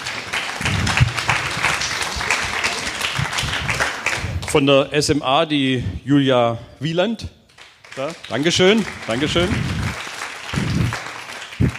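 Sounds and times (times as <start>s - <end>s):
audience applause: 0.0s - 4.8s, 7.6s - 11.7s
speech: 4.5s - 7.4s, 8.0s - 9.8s.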